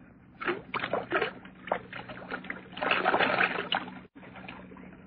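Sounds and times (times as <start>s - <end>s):
whiskey glugging as it is poured out of a bottle: 0.4s - 4.0s.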